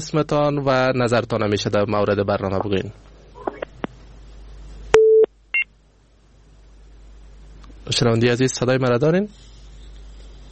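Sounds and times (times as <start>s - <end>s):
speech: 0.0s - 3.1s, 7.9s - 9.5s
telephone busy tone beeps after a dropped call: 5.0s - 5.7s.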